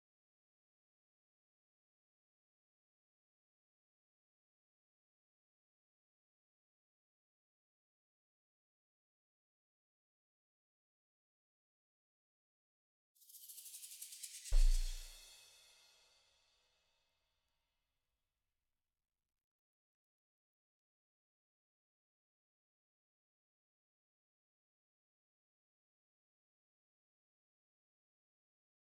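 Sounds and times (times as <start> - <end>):
drums: 13.3 - 16.0.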